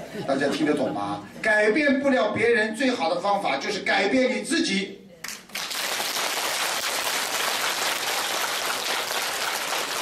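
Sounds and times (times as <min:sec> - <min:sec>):
speech: 0:00.2 - 0:05.0
crowd applauding: 0:05.5 - 0:10.0.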